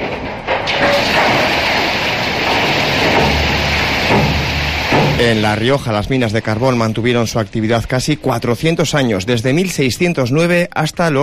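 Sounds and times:
mine cart being tipped over by hand: 0:00.0 - 0:05.6
speech: 0:05.2 - 0:11.2.

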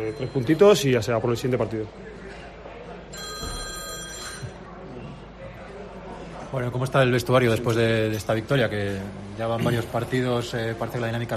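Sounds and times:
speech: 0:00.0 - 0:02.3, 0:06.5 - 0:11.3
noisy background: 0:00.0 - 0:11.3
mobile phone ringing with a bright high-pitched electronic ringtone: 0:03.1 - 0:04.6.

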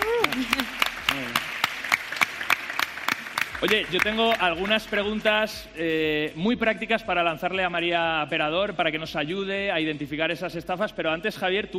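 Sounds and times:
audience applause: 0:00.0 - 0:05.1
speech: 0:03.6 - 0:11.7.

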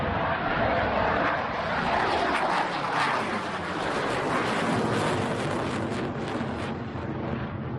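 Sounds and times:
military fighter jet flying over Palma: 0:00.0 - 0:07.7.

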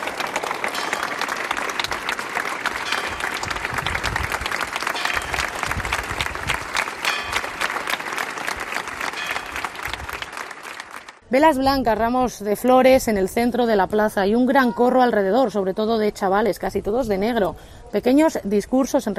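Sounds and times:
crowd applauding in a packed square: 0:00.0 - 0:11.2
speech: 0:11.3 - 0:19.1.

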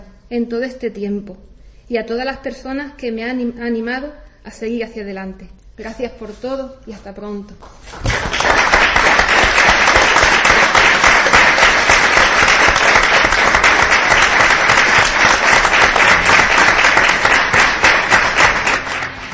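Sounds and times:
speech: 0:00.3 - 0:09.4
audience applause: 0:07.9 - 0:19.3.

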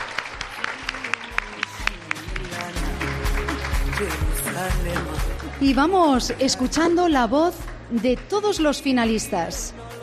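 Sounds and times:
audience applause: 0:00.0 - 0:05.8
speech: 0:04.0 - 0:09.8.

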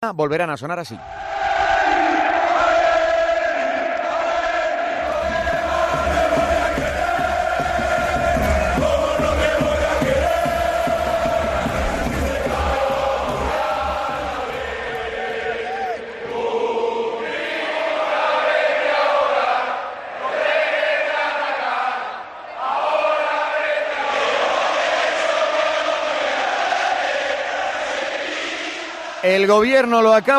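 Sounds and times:
speech: 0:00.0 - 0:01.3, 0:29.4 - 0:30.3
stadium crowd chanting and cheering: 0:01.0 - 0:30.3.

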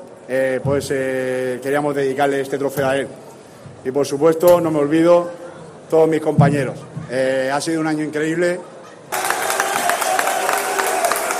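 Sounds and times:
speech: 0:00.3 - 0:09.2
applause by colleagues: 0:09.1 - 0:11.3.

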